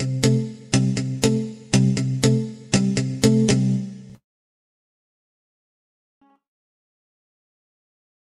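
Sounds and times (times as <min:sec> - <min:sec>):
clean jazz guitar: 0:00.0 - 0:04.2.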